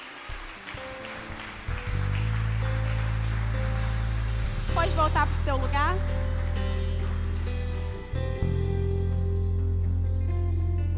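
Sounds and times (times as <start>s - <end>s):
audience applauding: 0.0s - 8.6s
sustained low keyboard chord: 0.8s - 10.9s
speech: 5.0s - 6.2s.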